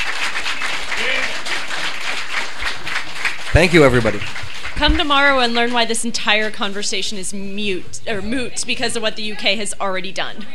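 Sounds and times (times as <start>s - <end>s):
audience applause: 0.0s - 6.9s
speech: 3.6s - 10.5s.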